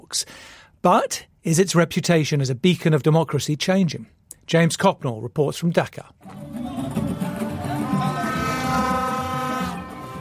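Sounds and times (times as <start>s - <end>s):
speech: 0.1s - 6.5s
crowd noise: 6.2s - 10.2s
horns and vuvuzelas blaring at campaign rally: 6.2s - 10.2s.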